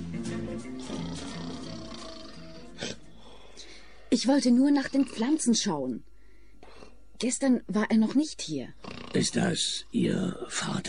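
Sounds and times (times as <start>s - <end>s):
man snoring: 0.7s - 3.4s, 8.8s - 9.6s
speech: 4.1s - 6.1s, 7.2s - 10.8s.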